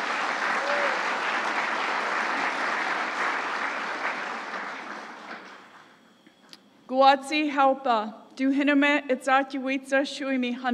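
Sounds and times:
applause: 0.0 - 6.0
speech: 7.0 - 10.7.

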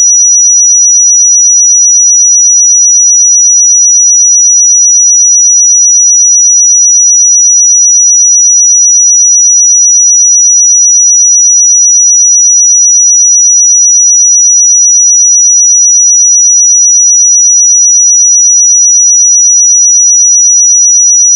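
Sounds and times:
pure sine tone at 5854 Hz: 0.0 - 21.3.

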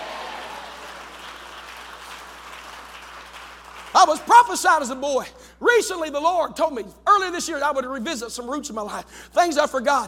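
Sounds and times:
audience clapping and shouting: 0.0 - 4.5
speech: 3.9 - 10.0.

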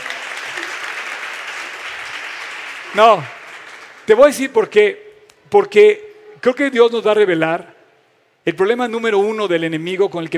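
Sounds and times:
audience applause: 0.0 - 4.1
speech: 2.9 - 3.4, 4.1 - 7.7, 8.4 - 10.3.

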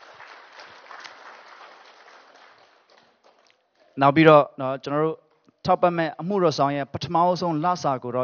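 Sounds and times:
church congregation clapping in praise of God: 0.0 - 4.0
speech: 4.0 - 8.2.

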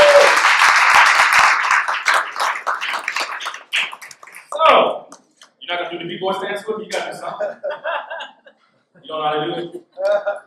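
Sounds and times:
crowd applauding: 0.0 - 4.6
speech: 6.2 - 8.1, 9.1 - 10.4
laughter: 7.1 - 8.6, 9.4 - 10.4.

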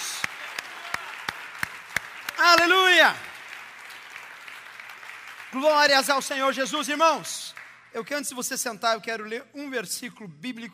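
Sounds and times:
audience applauding: 0.0 - 6.8
speech: 2.4 - 3.3, 5.5 - 10.7.

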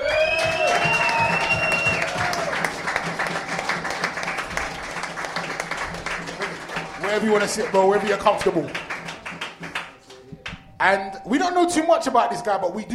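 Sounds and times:
audience applause and cheering: 0.0 - 10.0
speech: 7.2 - 8.8, 10.8 - 12.9.

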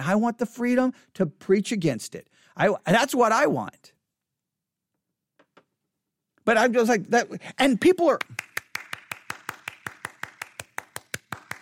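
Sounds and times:
speech: 0.0 - 4.0, 6.4 - 8.5
audience applause: 8.4 - 11.6.

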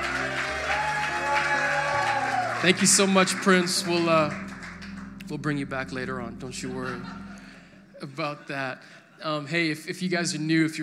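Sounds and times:
crowd round of applause: 0.0 - 5.4
sustained low musical tone: 0.0 - 9.9
speech: 2.6 - 4.5, 5.3 - 7.2, 8.0 - 10.8.

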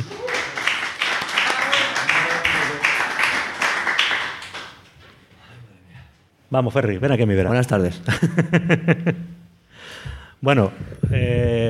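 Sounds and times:
audience applause: 0.0 - 4.9
speech: 6.5 - 9.4, 10.0 - 11.6.

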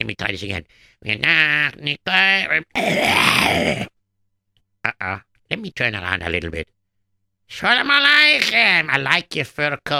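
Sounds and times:
speech: 0.0 - 3.9, 4.8 - 6.8, 7.5 - 9.9
person clearing throat loudly: 2.8 - 3.9.

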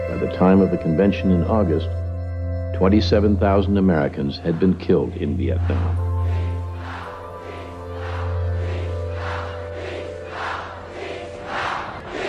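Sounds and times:
speech: 0.2 - 2.0, 2.8 - 6.5
crowd of protest demonstrators: 4.4 - 12.2.

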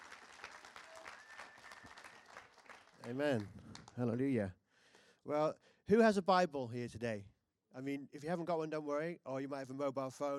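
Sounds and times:
audience applause: 0.0 - 4.1
speech: 3.0 - 4.6, 5.2 - 10.3.

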